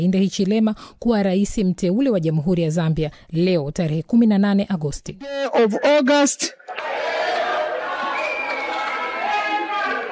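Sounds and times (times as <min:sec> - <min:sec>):
speech: 0:00.0 - 0:07.1
crowd cheering at the Zambia presidential election result announcement: 0:06.6 - 0:10.1.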